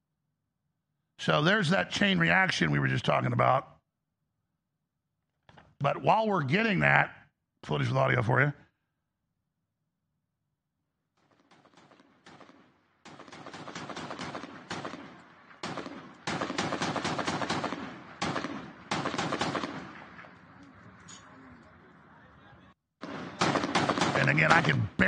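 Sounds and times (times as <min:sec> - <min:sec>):
speech: 0:01.2 - 0:03.7, 0:05.8 - 0:08.6, 0:24.5 - 0:25.0
small arms fire aimed at helicopters in the distance: 0:11.2 - 0:21.1, 0:23.0 - 0:24.9.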